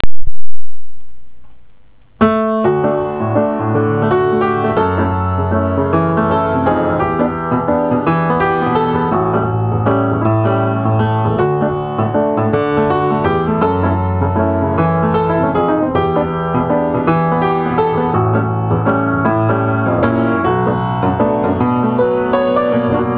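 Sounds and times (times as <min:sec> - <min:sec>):
piano composition: 0:00.0 - 0:23.1.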